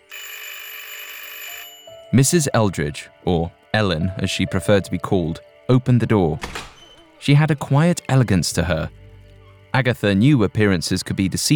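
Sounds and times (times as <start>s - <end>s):
doorbell ringing: 0.0s - 2.4s
speech: 2.1s - 6.6s, 7.2s - 9.0s, 9.7s - 11.5s.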